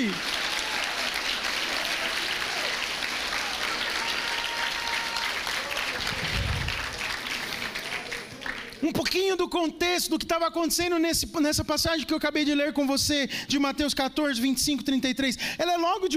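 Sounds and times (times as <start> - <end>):
speech: 0.0 - 0.3, 8.9 - 16.1
audience applause: 0.0 - 8.8.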